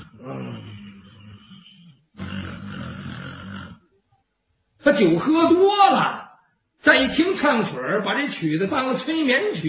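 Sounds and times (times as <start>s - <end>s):
man imitating loud snoring: 0.0s - 3.8s
speech: 4.9s - 6.2s, 6.8s - 9.6s.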